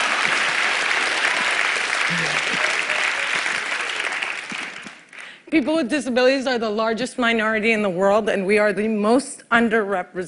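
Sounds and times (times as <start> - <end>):
audience applause: 0.0 - 5.4
speech: 2.1 - 2.7, 5.5 - 10.2.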